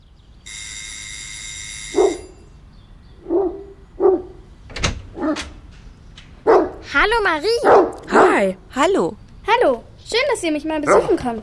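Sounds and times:
dog barking: 2.0 - 2.3, 3.2 - 4.4, 5.2 - 5.5, 6.4 - 6.8, 7.6 - 8.4, 10.9 - 11.2
speech: 7.0 - 11.4.

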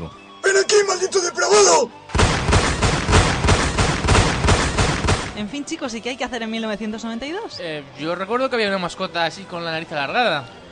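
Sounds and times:
speech: 1.5 - 2.0, 5.4 - 10.6
shotgun blasts: 2.1 - 5.5.

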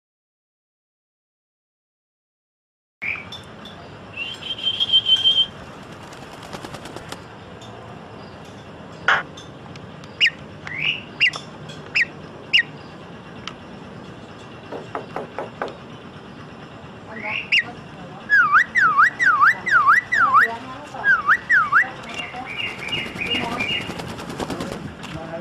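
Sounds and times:
Asian pied starling chattering song: 3.8 - 7.5, 10.1 - 13.4, 14.1 - 25.0.

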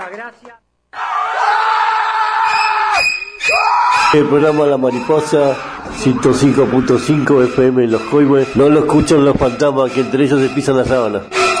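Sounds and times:
speech: 0.1 - 1.6, 3.5 - 11.4
crowd cheering and screaming on a radio programme: 1.0 - 7.3.

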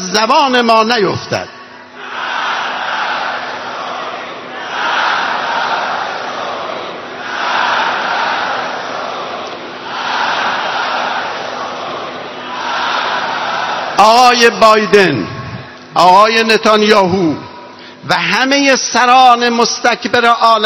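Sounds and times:
speech: 0.0 - 1.6, 14.0 - 15.4, 16.0 - 17.4, 18.0 - 20.6
large crowd chanting a political slogan: 2.0 - 14.0.

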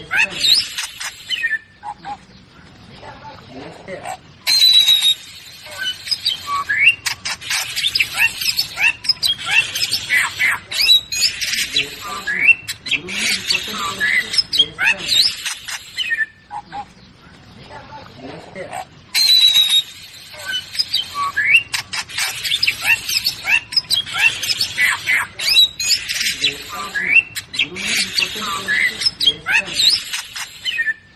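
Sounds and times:
birds chirping and squealing: 0.0 - 31.1.

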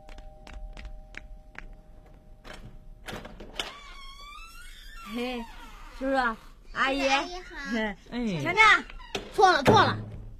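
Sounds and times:
door being opened: 2.0 - 6.0, 8.8 - 10.3
speech: 5.1 - 10.1.

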